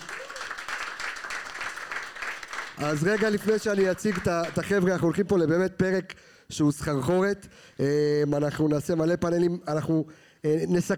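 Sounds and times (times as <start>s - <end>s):
audience applause: 0.0s - 4.6s
speech: 2.8s - 10.9s.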